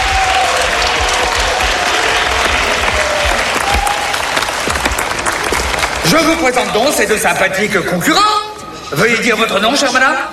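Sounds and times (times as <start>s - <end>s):
audience applause: 0.0s - 6.8s
speech: 6.1s - 10.3s.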